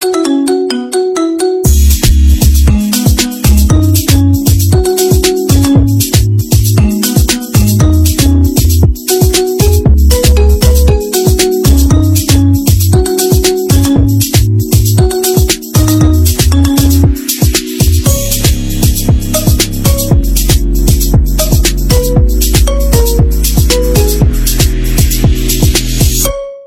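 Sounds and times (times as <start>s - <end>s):
marimba: 0.0s - 26.6s.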